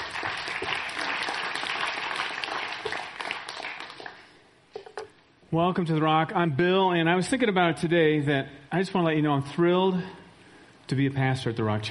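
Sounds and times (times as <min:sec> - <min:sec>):
church audience applause: 0:00.0 - 0:04.3
speech: 0:05.5 - 0:10.2, 0:10.9 - 0:11.8.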